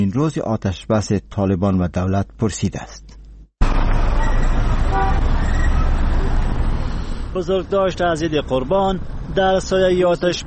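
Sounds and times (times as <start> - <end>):
speech: 0.0 - 3.1, 7.4 - 10.4
busy street traffic rumbling: 3.2 - 10.4
car horn toots: 4.2 - 5.9.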